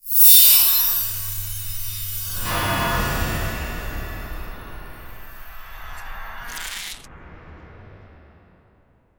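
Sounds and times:
twinkling magic spell being cast: 0:00.0 - 0:07.1.

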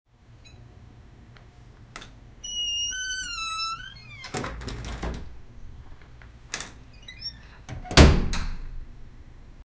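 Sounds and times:
apartment door opening: 0:02.0 - 0:08.8.

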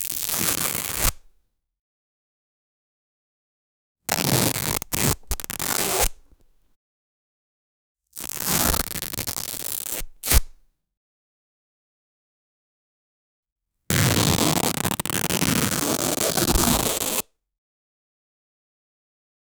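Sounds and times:
constant fabric tearing: 0:04.1 - 0:06.2, 0:08.2 - 0:10.5, 0:13.9 - 0:17.2.

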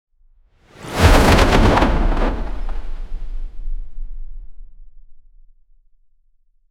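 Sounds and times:
wooden object thrown fast: 0:00.8 - 0:03.2.

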